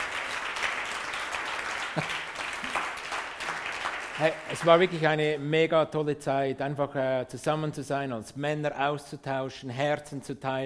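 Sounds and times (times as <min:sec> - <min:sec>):
applause: 0:00.0 - 0:05.5
speech: 0:02.0 - 0:02.2, 0:04.2 - 0:10.6.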